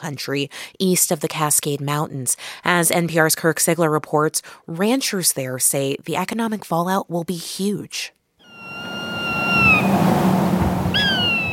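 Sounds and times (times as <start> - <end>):
speech: 0.0 - 8.2
hawks squawking on a telephone wire: 8.4 - 11.5
steady low rumble of wind: 8.5 - 11.5.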